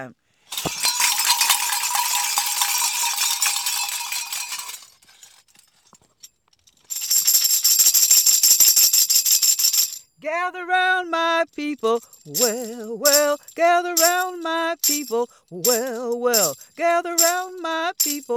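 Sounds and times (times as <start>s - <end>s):
speech: 0.0s - 0.8s, 10.5s - 18.3s
bells ringing: 0.5s - 5.0s.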